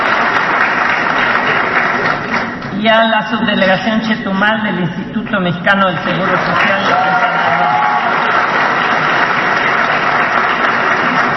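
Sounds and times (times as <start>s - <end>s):
applause: 0.0s - 2.8s, 6.2s - 11.3s
speech: 2.8s - 7.8s.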